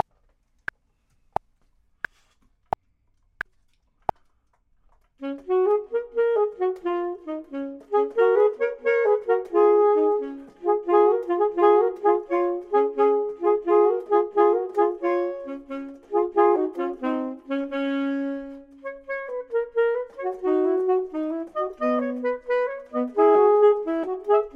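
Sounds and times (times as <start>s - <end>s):
clarinet: 5.2s - 24.5s
saxophone: 5.2s - 24.5s.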